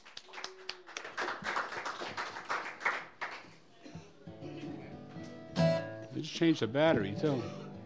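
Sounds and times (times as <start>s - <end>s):
audience applause welcoming a songwriter: 0.0s - 3.6s
speech: 6.2s - 7.6s.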